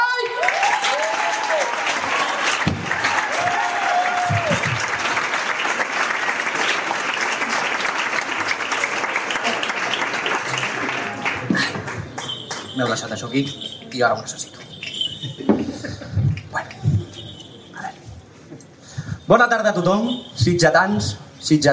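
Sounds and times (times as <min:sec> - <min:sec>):
audience applauding together: 0:00.0 - 0:15.4
speech: 0:12.9 - 0:14.6, 0:19.3 - 0:21.7.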